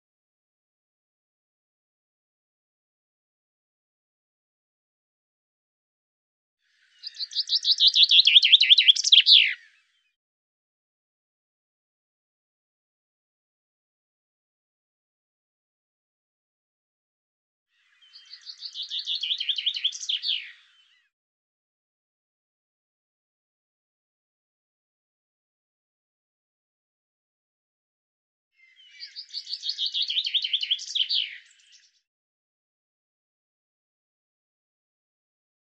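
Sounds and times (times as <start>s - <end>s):
bird song: 6.6s - 10.2s, 17.7s - 21.2s, 28.6s - 32.1s.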